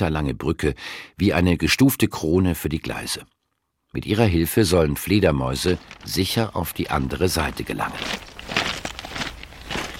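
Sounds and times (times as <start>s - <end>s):
speech: 0.0s - 8.3s
footsteps walking on gravel bed under a bridge: 5.5s - 9.9s.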